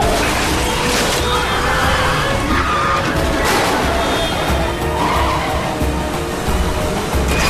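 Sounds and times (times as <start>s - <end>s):
cars colliding with crunching impacts: 0.0s - 5.1s
roaring car engines in a car chase: 0.0s - 7.4s
skidding tires: 0.0s - 7.4s.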